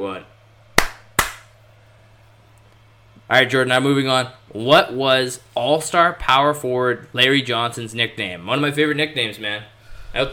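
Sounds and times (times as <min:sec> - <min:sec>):
speech: 0:00.0 - 0:00.4, 0:03.3 - 0:10.3
single hand clap for recording sync: 0:00.8 - 0:01.5.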